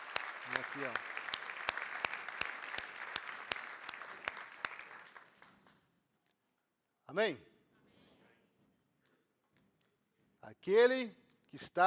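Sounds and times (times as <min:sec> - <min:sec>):
audience applauding: 0:00.0 - 0:05.8
speech: 0:00.5 - 0:01.2, 0:07.1 - 0:07.5, 0:10.5 - 0:11.8.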